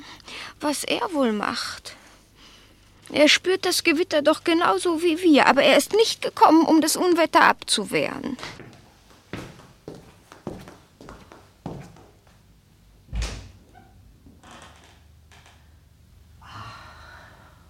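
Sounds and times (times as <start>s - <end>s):
speech: 0.6s - 2.0s, 3.1s - 8.6s
terrace door being opened: 13.1s - 15.6s.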